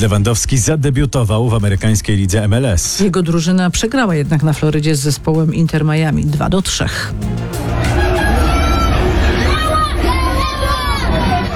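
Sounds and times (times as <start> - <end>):
speech: 0.0 - 8.0
Polish fans in Florida shouting and cheering to greet Robert Lewandowski: 7.1 - 11.5.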